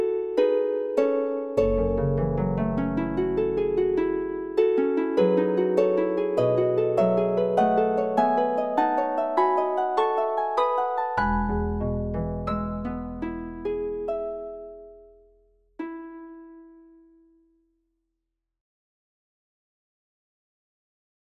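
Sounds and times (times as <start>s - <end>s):
arabesque harp playing: 0.0s - 16.9s.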